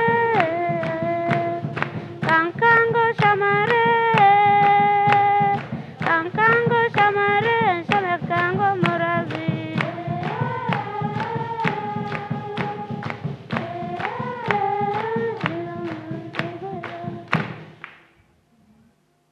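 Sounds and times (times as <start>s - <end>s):
engalabi in Uganda: 0.0s - 17.9s.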